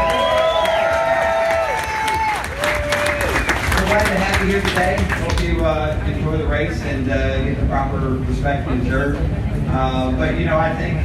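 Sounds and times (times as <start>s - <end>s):
long sustained whistles and whoops: 0.0s - 3.8s
crowd cheering: 0.0s - 5.0s
crowd applauding: 0.0s - 5.7s
speech: 4.4s - 11.0s.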